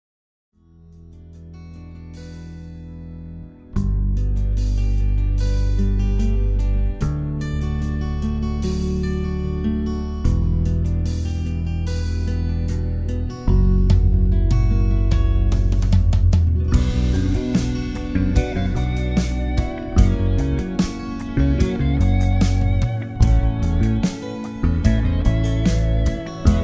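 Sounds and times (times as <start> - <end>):
instrumental sampler music without vocals: 3.8 - 26.6.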